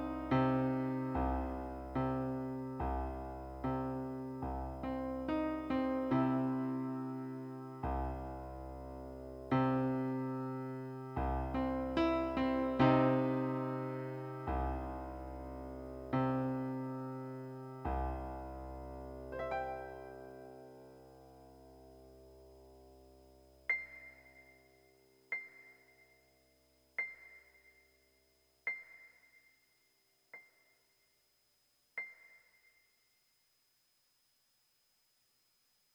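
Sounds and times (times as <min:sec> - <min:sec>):
sad piano instrumental: 0:00.0 - 0:21.2.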